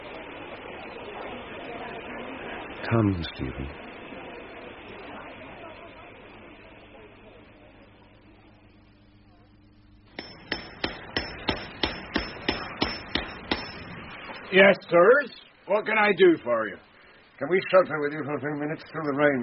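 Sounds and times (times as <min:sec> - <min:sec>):
dull hissing noise: 0:00.0 - 0:19.4
speech: 0:02.8 - 0:03.8, 0:14.5 - 0:19.4
blacksmith's hammer on an anvil: 0:10.1 - 0:14.0.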